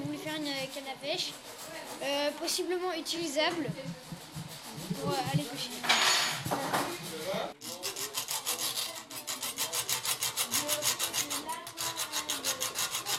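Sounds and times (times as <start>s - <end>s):
speech: 0.4s - 4.2s, 5.0s - 7.6s
hacksaw cutting through metal: 7.6s - 13.1s.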